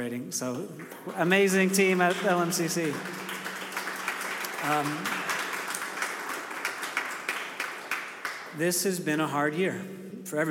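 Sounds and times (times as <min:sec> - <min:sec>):
speech: 0:00.0 - 0:03.3, 0:04.6 - 0:05.2, 0:08.6 - 0:10.4
audience clapping: 0:00.8 - 0:09.0.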